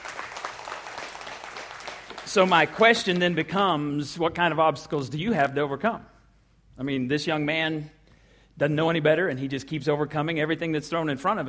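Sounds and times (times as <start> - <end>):
audience applause: 0.0 - 3.2
speech: 2.3 - 6.1, 6.8 - 8.0, 8.6 - 11.4.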